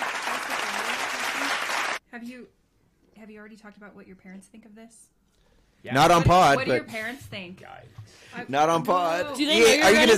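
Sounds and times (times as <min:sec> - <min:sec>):
clapping: 0:00.0 - 0:02.0
speech: 0:02.2 - 0:02.6, 0:03.2 - 0:05.2, 0:05.8 - 0:10.1.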